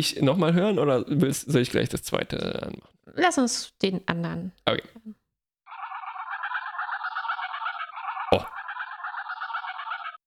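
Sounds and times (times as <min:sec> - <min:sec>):
speech: 0:00.0 - 0:05.2, 0:08.3 - 0:08.6
geese honking: 0:05.7 - 0:10.2.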